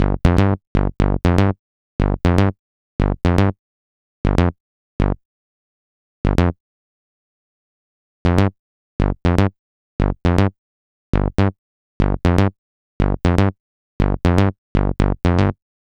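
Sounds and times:
EDM bass: 0.0s - 3.5s, 4.3s - 5.2s, 6.3s - 6.6s, 8.3s - 10.6s, 11.2s - 15.6s.

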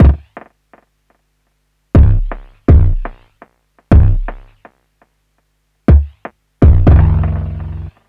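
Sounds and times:
EAST bass drum: 0.0s - 0.4s, 2.0s - 3.3s, 3.9s - 4.6s, 5.9s - 7.9s
drum loop: 0.0s - 0.9s, 2.0s - 4.8s, 5.9s - 8.0s.

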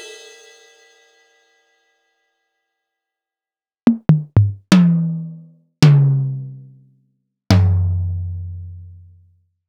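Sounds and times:
Roland SPD-S1 drum pad hits: 3.9s - 6.7s, 7.5s - 9.0s.

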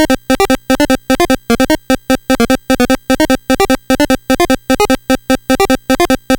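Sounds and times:
NES synth chiptune music: 0.0s - 6.3s.

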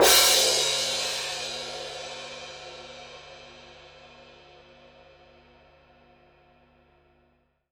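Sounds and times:
orchestral cymbals played mezzo forte: 0.0s - 5.6s.

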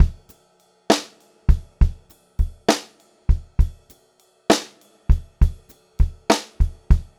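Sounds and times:
pop-rock drum loop: 0.0s - 0.2s, 0.9s - 3.8s, 4.5s - 7.1s.

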